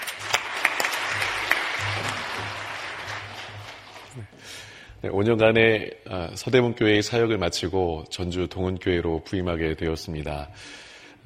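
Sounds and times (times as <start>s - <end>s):
audience applauding: 0.0s - 4.6s
speech: 4.2s - 11.2s.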